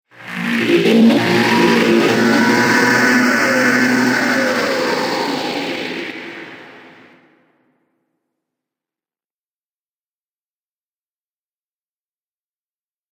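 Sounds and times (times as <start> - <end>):
spaceship engine noise: 0.1 - 7.2.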